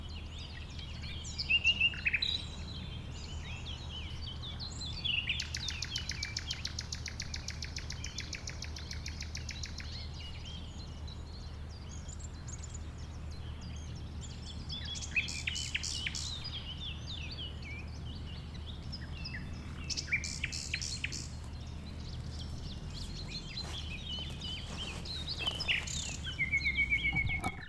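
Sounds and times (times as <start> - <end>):
common nightingale song: 0.0 - 27.6.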